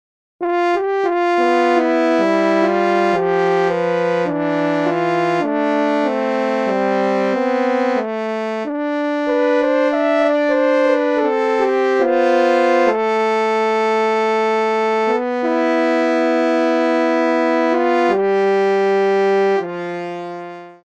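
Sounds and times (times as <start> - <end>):
French horn: 0.4 - 20.8.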